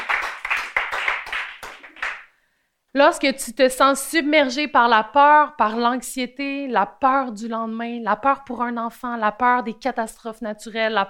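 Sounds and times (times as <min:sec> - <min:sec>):
church congregation clapping during a French-language service: 0:00.0 - 0:02.3
speech: 0:03.0 - 0:11.0.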